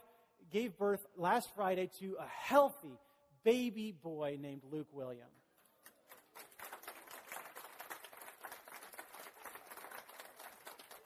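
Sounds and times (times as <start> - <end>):
speech: 0.5 - 5.4
crowd cheering and applauding: 6.1 - 11.0.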